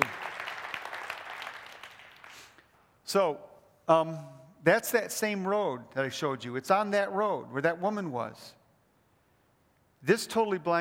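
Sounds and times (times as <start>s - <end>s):
faint applause from an audience at a talk: 0.0s - 2.4s
speech: 3.1s - 8.6s, 10.0s - 10.7s.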